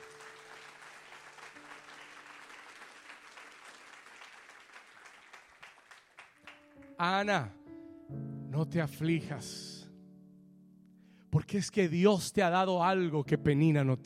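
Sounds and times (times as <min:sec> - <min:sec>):
audience applauding: 0:00.0 - 0:07.0
speech: 0:07.0 - 0:07.6, 0:08.6 - 0:09.7, 0:11.5 - 0:14.0.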